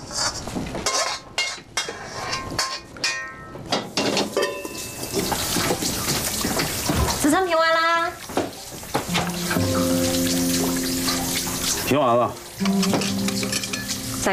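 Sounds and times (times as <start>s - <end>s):
dishes or utensils clinking: 0.8s - 7.2s, 8.4s - 14.3s
tap water running while washing hands: 4.2s - 14.3s
hands being washed: 5.1s - 7.4s, 8.2s - 14.3s
speech: 11.9s - 14.3s.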